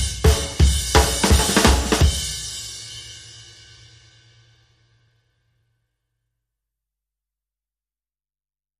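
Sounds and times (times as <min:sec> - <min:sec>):
drums only mix: 0:00.0 - 0:03.1.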